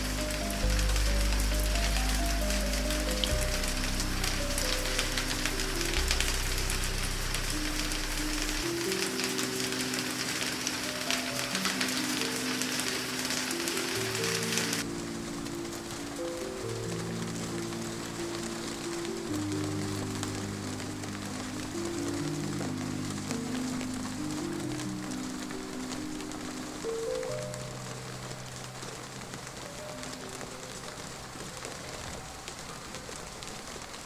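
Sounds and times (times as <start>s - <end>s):
rain on roof: 0.0s - 34.0s.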